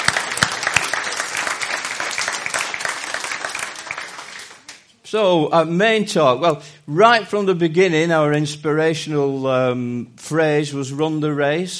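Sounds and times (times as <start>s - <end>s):
audience clapping: 0.0s - 4.9s
speech: 5.1s - 11.7s.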